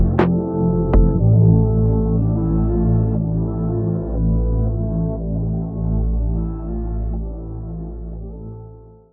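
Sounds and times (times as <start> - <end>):
background music in a hall: 0.0 - 9.1.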